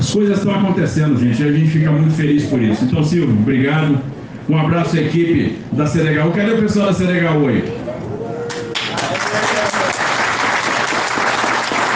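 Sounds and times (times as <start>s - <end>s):
speech: 0.1s - 7.8s
faint voices calling out: 7.5s - 9.9s
audience applause: 8.5s - 11.9s.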